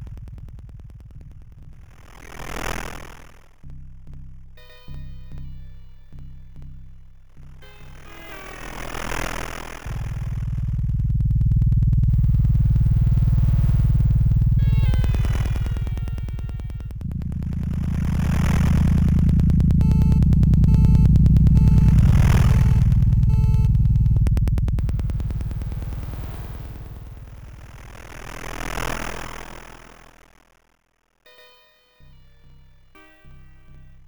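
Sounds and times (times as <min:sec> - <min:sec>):
ambient noise in front of a station: 0:09.8 - 0:29.2.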